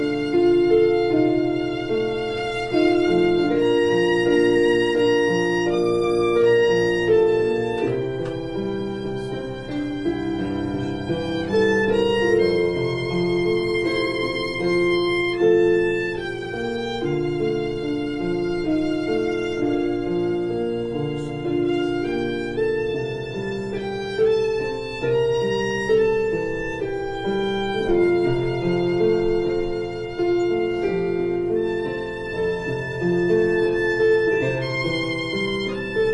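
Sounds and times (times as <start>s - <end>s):
piano and violin prelude: 0.0s - 36.1s.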